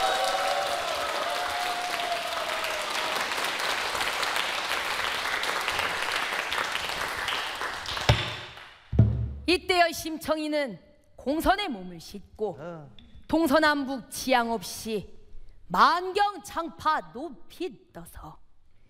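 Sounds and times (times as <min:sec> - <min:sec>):
audience applauding the drummer at a Korean pansori performance: 0:00.0 - 0:08.8
sharp tap: 0:08.1 - 0:08.5
speech: 0:09.5 - 0:18.4.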